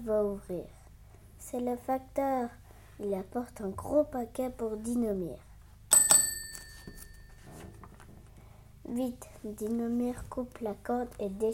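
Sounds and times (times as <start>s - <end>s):
speech: 0.0s - 0.8s, 1.4s - 5.5s, 8.9s - 11.5s
doorbell ringing: 5.9s - 7.7s.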